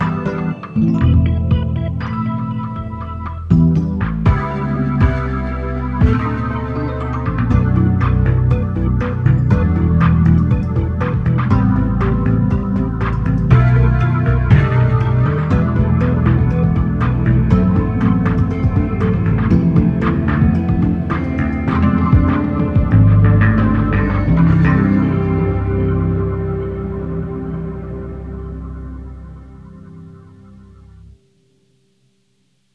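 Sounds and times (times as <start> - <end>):
electronic piano: 0.0 - 31.8
layered vocals: 4.3 - 30.4.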